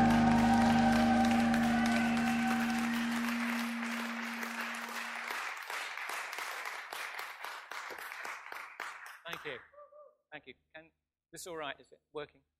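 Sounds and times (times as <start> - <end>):
sustained musical chord: 0.0 - 5.6
crowd clapping: 0.0 - 9.6
speech: 9.4 - 9.7, 10.3 - 12.5.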